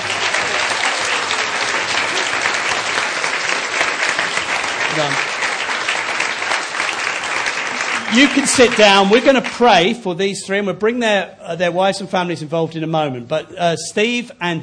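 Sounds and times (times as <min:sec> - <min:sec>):
audience applauding: 0:00.0 - 0:10.0
speech: 0:05.0 - 0:05.3, 0:08.1 - 0:14.6.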